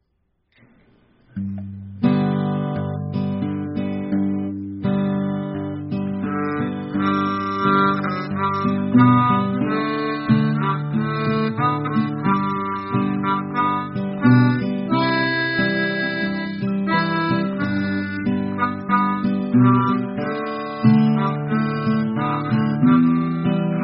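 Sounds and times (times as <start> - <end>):
guitar: 0.0 - 23.8.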